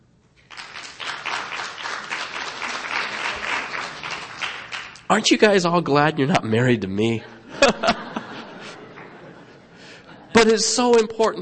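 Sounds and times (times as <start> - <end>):
audience clapping hands: 0.4 - 5.5, 8.6 - 9.6
laughter: 1.8 - 4.7, 7.3 - 10.7
speech: 5.1 - 7.4, 10.4 - 11.4.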